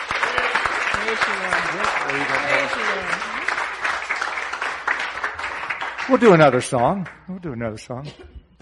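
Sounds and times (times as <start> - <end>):
cheers and whoops: 0.0 - 1.2
audience applauding: 0.0 - 7.2
speech: 1.1 - 3.4, 6.1 - 8.3.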